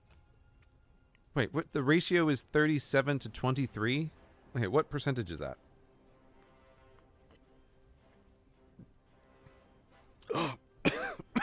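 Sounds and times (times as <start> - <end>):
speech: 1.4 - 5.6
person coughing from choking on fizzy water: 10.2 - 11.4.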